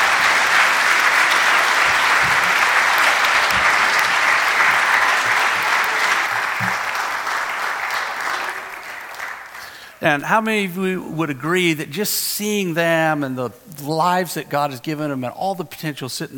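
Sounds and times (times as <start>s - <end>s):
audience applause for children: 0.0s - 10.0s
speech: 10.0s - 16.3s.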